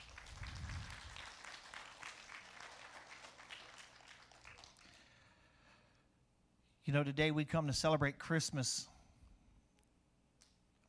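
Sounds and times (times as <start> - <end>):
audience clapping: 0.0 - 5.2
speech: 6.9 - 8.9.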